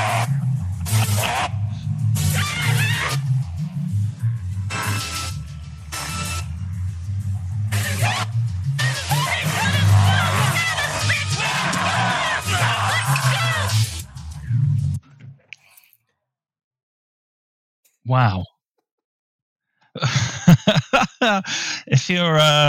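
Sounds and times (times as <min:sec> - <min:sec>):
slobbering monster low rumbling growl: 0:00.0 - 0:13.4
laughter: 0:00.1 - 0:01.8, 0:20.0 - 0:22.6
teenagers screaming: 0:11.4 - 0:13.8
speech: 0:18.1 - 0:18.5, 0:20.9 - 0:22.6.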